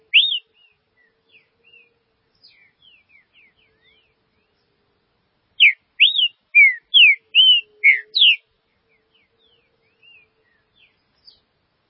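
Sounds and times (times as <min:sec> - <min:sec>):
Green-winged saltator whistled song: 0:00.1 - 0:00.5, 0:05.6 - 0:08.4.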